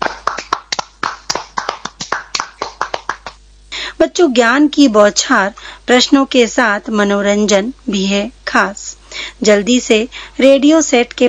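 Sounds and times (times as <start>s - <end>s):
small crowd clapping: 0.0s - 3.4s
speech: 4.0s - 11.2s.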